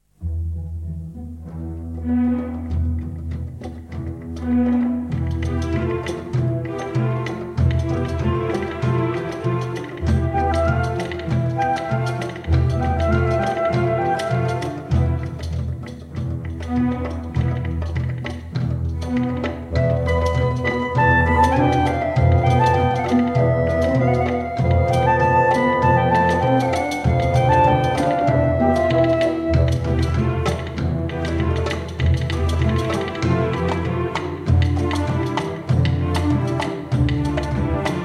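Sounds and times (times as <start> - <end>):
festive Arabic suite music: 0.2 - 38.0.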